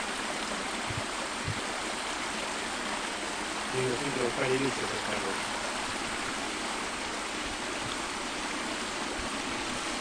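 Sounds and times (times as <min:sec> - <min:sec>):
seasonal stream flowing: 0:00.0 - 0:09.9
speech: 0:03.8 - 0:05.6.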